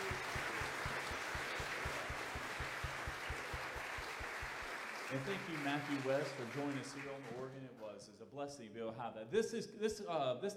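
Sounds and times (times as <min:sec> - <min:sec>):
crowd applauding for choir and orchestra: 0:00.0 - 0:07.6
speech: 0:05.1 - 0:10.5.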